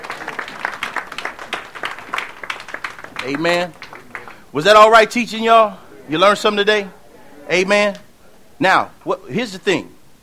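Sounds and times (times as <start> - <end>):
audience clapping hands: 0.0 - 5.0
speech: 3.2 - 3.8, 4.5 - 8.0, 8.6 - 10.0.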